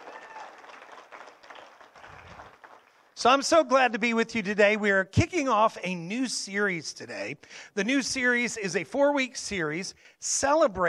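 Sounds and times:
church congregation applauding to welcome online viewers: 0.0 - 3.2
speech: 3.2 - 10.8.

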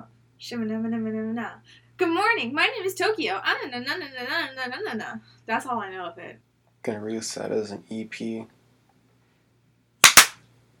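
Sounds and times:
speech: 0.4 - 8.6
loud hand clap: 10.0 - 10.4.

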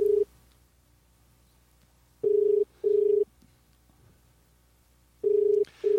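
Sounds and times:
ringing tone of an outgoing telephone call: 0.0 - 0.3, 2.2 - 3.3, 5.2 - 5.9.

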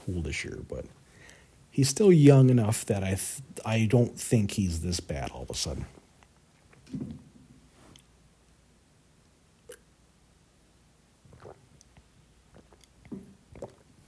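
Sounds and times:
speech: 0.1 - 1.0, 1.7 - 6.0
person drinking water: 11.2 - 14.0.

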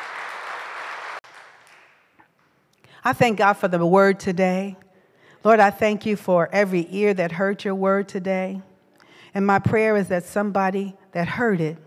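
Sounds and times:
audience hand clapping: 0.0 - 2.6
speech: 3.0 - 4.8, 5.4 - 8.7, 9.3 - 11.8.

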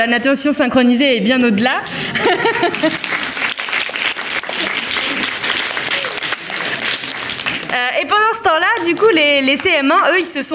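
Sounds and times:
speech: 0.0 - 3.3, 8.0 - 10.5
laughter: 2.0 - 3.4, 4.4 - 7.4
audience applause: 2.2 - 8.1.

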